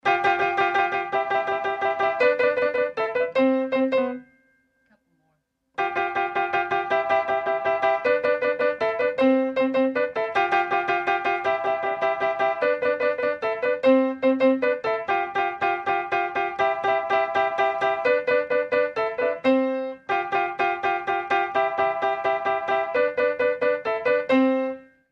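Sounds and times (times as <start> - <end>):
piano playing: 0.0 - 4.6, 5.8 - 25.0.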